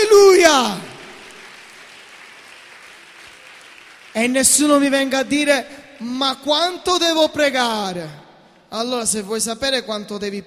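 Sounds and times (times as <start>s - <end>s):
speech: 0.4s - 0.8s, 4.2s - 10.4s
audience applauding: 0.8s - 6.2s.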